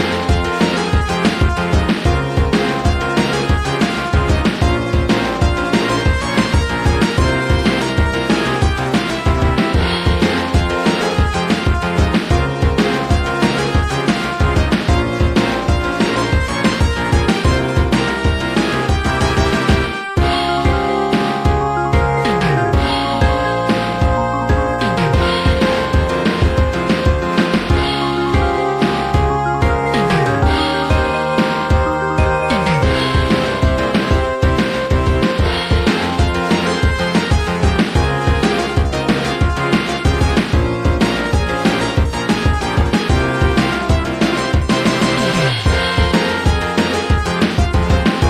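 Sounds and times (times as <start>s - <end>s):
music: 0.0s - 48.2s.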